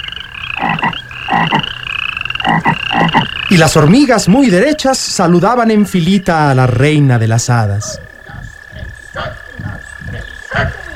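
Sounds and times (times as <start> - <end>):
toads croaking: 0.0 - 10.9
speech: 3.5 - 8.1.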